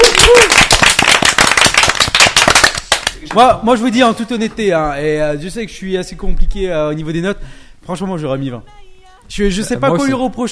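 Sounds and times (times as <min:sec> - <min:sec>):
applause: 0:00.0 - 0:03.2
speech: 0:03.4 - 0:10.5.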